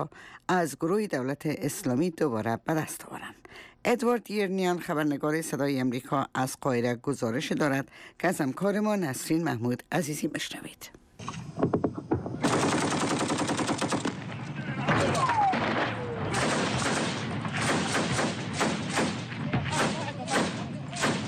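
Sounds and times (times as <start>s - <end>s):
speech: 0.0s - 11.8s
gunfire exchange between militias near Ramadi: 12.4s - 21.2s.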